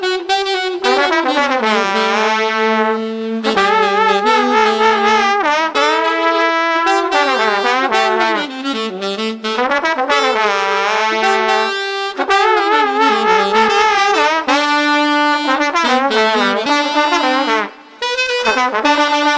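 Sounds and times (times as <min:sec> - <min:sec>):
street sax and trombone combo playing upbeat music without drums: 0:00.0 - 0:19.3.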